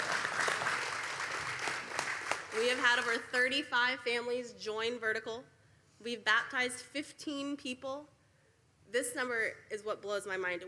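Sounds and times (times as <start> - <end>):
audience applause: 0.0 - 2.9
speech: 2.6 - 8.2, 8.9 - 10.6.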